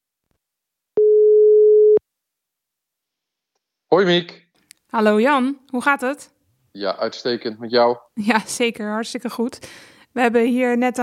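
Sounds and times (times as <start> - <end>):
telephone ringing tone while placing a call: 1.0 - 2.0
speech: 3.9 - 11.0.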